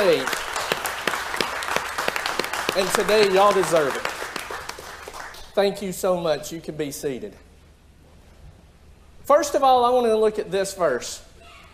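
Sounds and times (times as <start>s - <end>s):
speech: 0.0s - 0.4s, 2.8s - 4.1s, 5.6s - 7.4s, 9.3s - 11.3s
audience applause: 0.0s - 5.6s.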